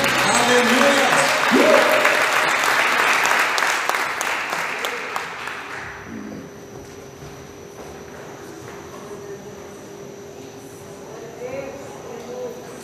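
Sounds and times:
crowd clapping in applause: 0:00.0 - 0:06.4.

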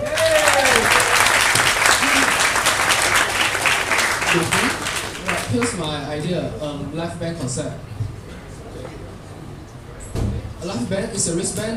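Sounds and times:
audience applause: 0:00.0 - 0:06.0
speech: 0:04.4 - 0:04.7, 0:05.5 - 0:08.0, 0:10.6 - 0:11.7.

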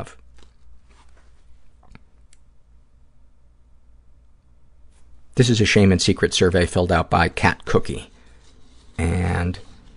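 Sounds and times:
speech: 0:00.0 - 0:00.2, 0:05.4 - 0:08.1, 0:09.0 - 0:09.7
paper shuffling: 0:00.4 - 0:01.5, 0:07.8 - 0:09.9.

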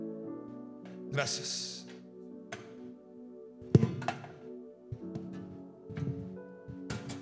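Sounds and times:
speech: 0:01.1 - 0:01.8
wooden chair being moved and set down: 0:03.7 - 0:04.4, 0:05.0 - 0:07.1.

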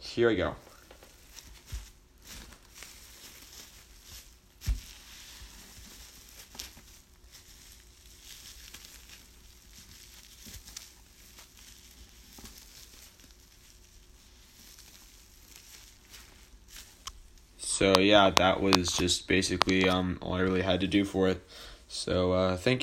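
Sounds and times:
speech: 0:00.2 - 0:00.7, 0:17.8 - 0:22.8
paper wadded up to mimic sizzling bacon: 0:00.8 - 0:20.8.

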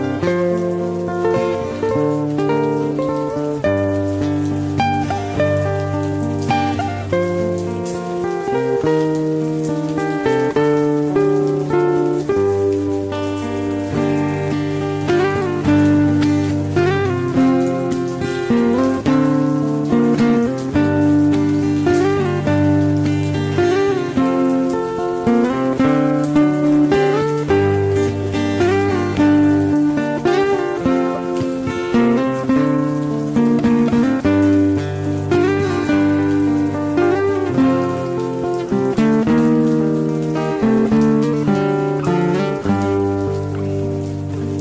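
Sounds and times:
guitar music: 0:00.0 - 0:44.5
steady rain patter: 0:00.0 - 0:44.5.

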